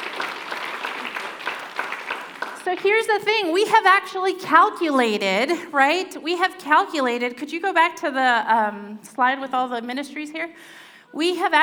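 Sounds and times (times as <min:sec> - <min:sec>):
audience round of applause at a church gathering: 0:00.0 - 0:03.2
speech: 0:02.6 - 0:11.6.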